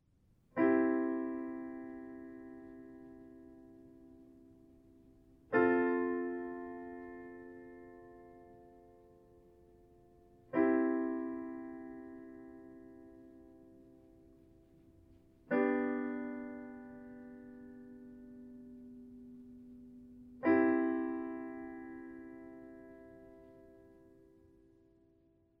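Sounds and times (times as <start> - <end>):
alternative minor chords: 0.6 - 25.5.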